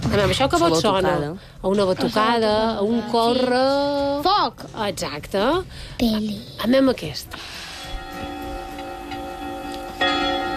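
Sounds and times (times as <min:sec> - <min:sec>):
speech: 0:00.1 - 0:07.6
church bells ringing: 0:07.9 - 0:10.5.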